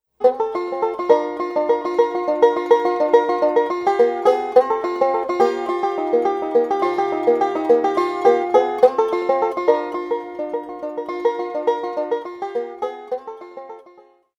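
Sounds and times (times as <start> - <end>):
banjo: 0.2 - 14.3.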